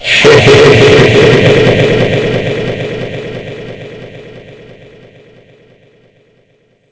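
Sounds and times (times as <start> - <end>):
person laughing: 0.0 - 1.8.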